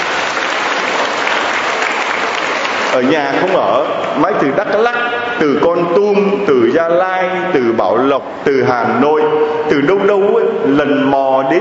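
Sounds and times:
audience applause congratulating attendees from provinces: 0:00.0 - 0:04.1
speech: 0:02.9 - 0:11.5.

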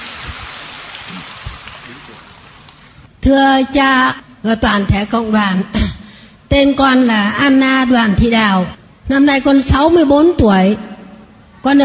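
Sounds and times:
crowd applause: 0:00.0 - 0:02.7
speech: 0:03.2 - 0:05.8, 0:06.5 - 0:10.9, 0:11.6 - 0:11.8.

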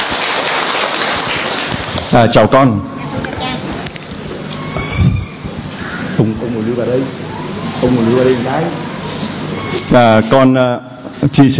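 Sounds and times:
round of applause: 0:00.0 - 0:02.1
speech: 0:02.1 - 0:03.0, 0:06.2 - 0:07.2, 0:07.8 - 0:08.8, 0:09.9 - 0:11.5.

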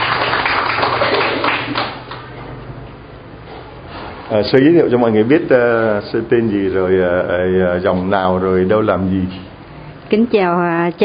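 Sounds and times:
audience applause welcoming a nun: 0:00.0 - 0:02.3
speech: 0:04.3 - 0:09.5, 0:10.1 - 0:11.0.

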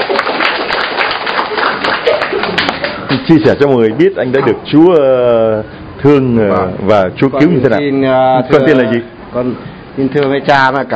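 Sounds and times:
church congregation applause welcoming a man: 0:00.0 - 0:03.2
speech: 0:03.1 - 0:10.9.

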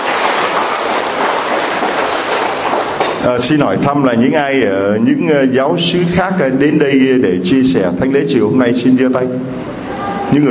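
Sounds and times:
big round of applause: 0:00.0 - 0:03.2
speech: 0:03.2 - 0:10.4.

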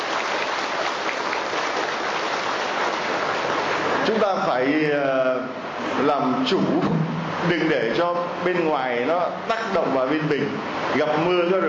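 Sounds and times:
audience applauding loudly: 0:00.0 - 0:03.7
speech: 0:04.1 - 0:11.6.

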